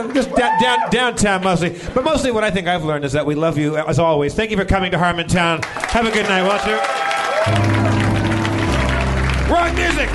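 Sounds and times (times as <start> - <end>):
audience clapping: 0.0 - 1.6, 5.5 - 10.1
speech: 0.0 - 7.8, 9.5 - 10.1
loud music carrying low sustained tones: 7.5 - 10.1.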